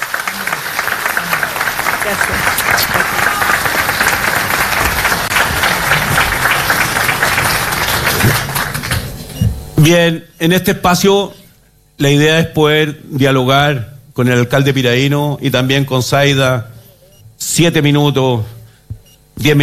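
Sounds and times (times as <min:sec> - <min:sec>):
audience applause: 0:00.0 - 0:09.2
speech: 0:02.1 - 0:03.8, 0:09.8 - 0:11.4, 0:12.0 - 0:16.7, 0:17.4 - 0:18.6, 0:19.4 - 0:19.6.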